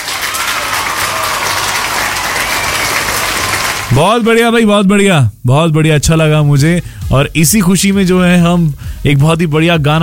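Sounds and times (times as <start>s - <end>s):
applause: 0.0s - 4.1s
speech: 4.0s - 10.0s.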